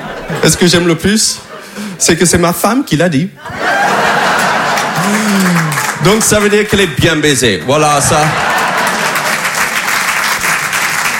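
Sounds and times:
laughter: 0:00.0 - 0:02.0, 0:03.4 - 0:06.2, 0:07.9 - 0:09.8
speech: 0:00.3 - 0:04.0, 0:05.0 - 0:08.5
audience applause: 0:03.8 - 0:06.7, 0:08.2 - 0:11.1.

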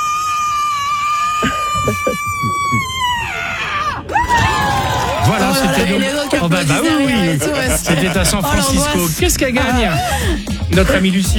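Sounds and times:
woman's record-loud scream: 0:00.0 - 0:04.8
laughter: 0:01.3 - 0:11.3
speech: 0:05.8 - 0:11.3.

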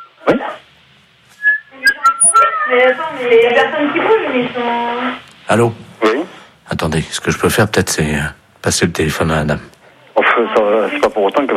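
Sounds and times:
speech: 0:00.3 - 0:00.6, 0:02.7 - 0:06.0, 0:06.7 - 0:09.7, 0:10.4 - 0:11.5
seagull calling: 0:01.4 - 0:03.0.

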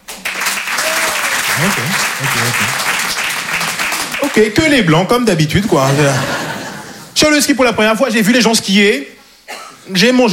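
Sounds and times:
audience clapping: 0:00.0 - 0:04.8
laughter: 0:01.6 - 0:02.9, 0:05.6 - 0:07.2
speech: 0:01.6 - 0:03.2, 0:04.2 - 0:06.5, 0:07.2 - 0:09.2, 0:09.9 - 0:10.3.

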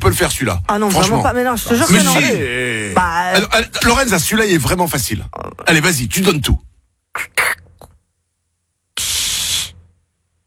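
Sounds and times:
speech: 0:00.1 - 0:07.3
person imitating a soda bottle being opened: 0:07.1 - 0:08.0.

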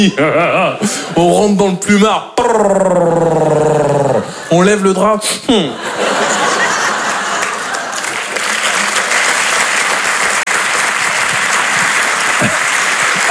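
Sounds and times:
laughter: 0:00.0 - 0:01.3, 0:05.6 - 0:09.2, 0:11.8 - 0:13.3
speech: 0:00.0 - 0:03.4, 0:04.5 - 0:05.9
audience applause: 0:06.3 - 0:13.3.

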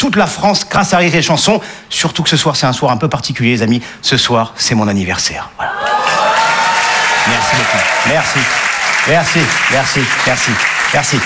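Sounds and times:
speech: 0:00.0 - 0:06.2, 0:07.2 - 0:11.2
people calling out and cheering: 0:05.6 - 0:09.5
audience applause: 0:05.7 - 0:11.2.

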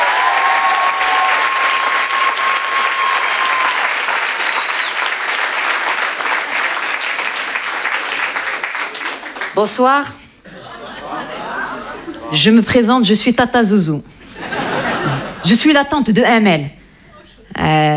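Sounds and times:
thunderous applause: 0:00.0 - 0:09.6
speech: 0:09.6 - 0:10.2, 0:12.3 - 0:14.1, 0:15.4 - 0:16.8, 0:17.6 - 0:17.9
laughter: 0:10.4 - 0:12.5, 0:14.2 - 0:15.6.

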